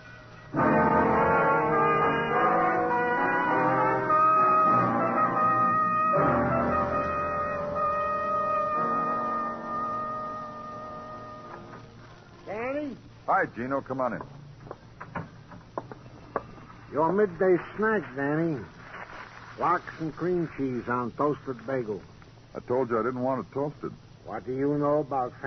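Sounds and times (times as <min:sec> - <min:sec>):
ambulance siren: 0:00.6 - 0:11.9
speech: 0:13.4 - 0:14.4, 0:17.0 - 0:18.8, 0:19.6 - 0:25.4.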